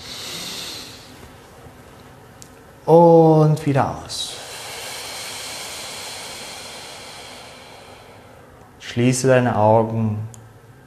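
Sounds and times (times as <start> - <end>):
deep breath in through nose: 0.0 - 1.2, 4.3 - 8.5
speech: 2.8 - 4.3, 9.0 - 10.4.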